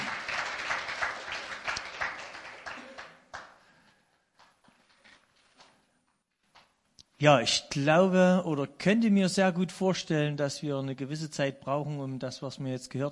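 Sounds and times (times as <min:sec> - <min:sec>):
audience applause: 0:00.0 - 0:03.9
speech: 0:07.2 - 0:13.1.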